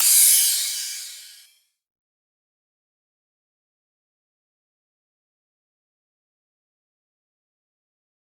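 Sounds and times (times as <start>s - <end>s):
psytrance cymbal: 0.0s - 1.5s.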